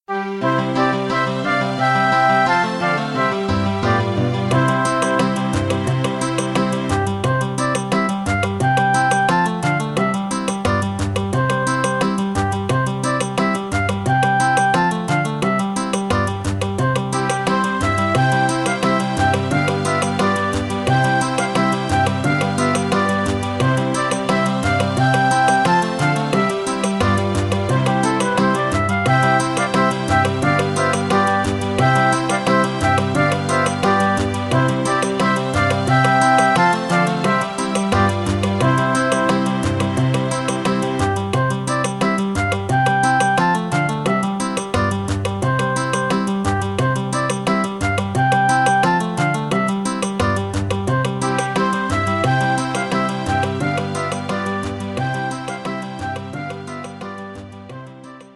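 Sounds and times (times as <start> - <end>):
German children's song backing track: 0.0 - 58.3.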